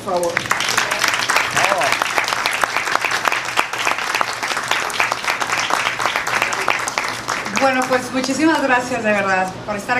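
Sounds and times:
speech: 0.0s - 0.6s, 7.6s - 9.9s
audience applause: 0.1s - 8.3s.

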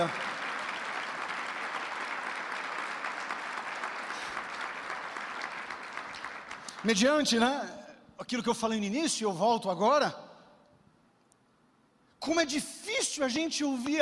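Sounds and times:
speech: 0.0s - 0.2s, 6.8s - 10.2s, 12.2s - 14.0s
audience applause: 0.0s - 7.0s.

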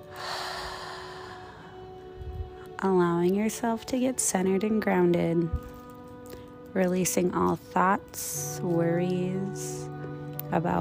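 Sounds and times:
deep breath in through the nose and out through the mouth: 0.1s - 2.0s
speech: 2.8s - 5.7s, 6.8s - 9.9s, 10.5s - 10.8s.

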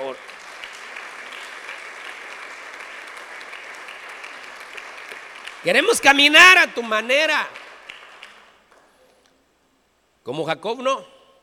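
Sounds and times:
audience applause: 0.0s - 8.6s
speech: 5.6s - 7.6s, 10.3s - 11.1s.

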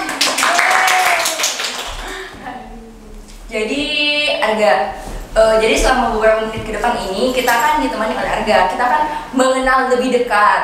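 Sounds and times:
audience clapping: 0.0s - 2.4s
speech: 4.5s - 10.6s.

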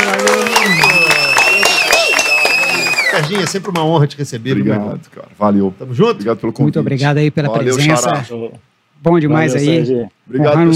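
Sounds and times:
round of applause: 0.0s - 4.0s
speech: 3.3s - 10.7s.

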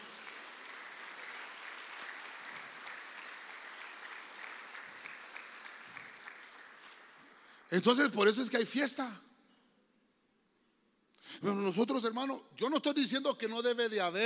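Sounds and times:
audience applauding: 0.0s - 7.7s
speech: 7.7s - 9.3s, 11.4s - 14.2s.

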